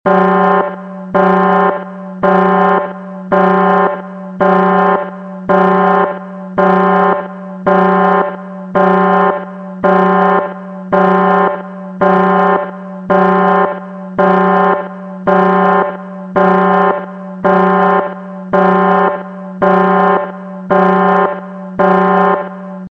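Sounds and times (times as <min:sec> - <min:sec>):
alarm: 0:00.1 - 0:22.9.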